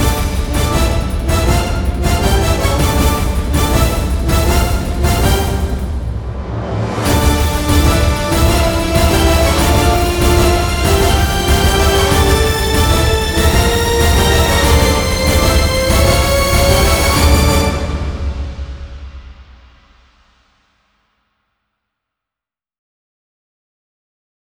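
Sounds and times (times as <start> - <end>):
instrumental music: 0.0 - 19.0.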